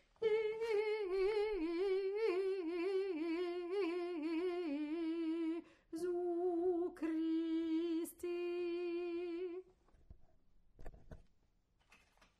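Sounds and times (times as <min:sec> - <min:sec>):
alto singing: 0:00.0 - 0:09.6.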